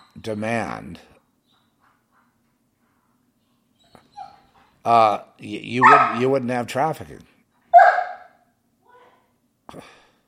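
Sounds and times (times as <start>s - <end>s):
speech: 0.2s - 1.2s, 4.8s - 7.3s, 9.7s - 10.0s
dog whimpering: 3.8s - 4.6s, 5.8s - 6.3s.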